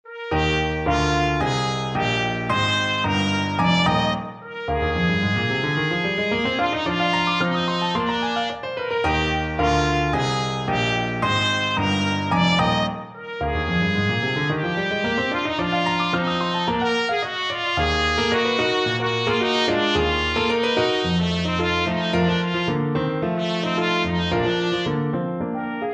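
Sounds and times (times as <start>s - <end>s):
trumpet: 0.0s - 25.9s.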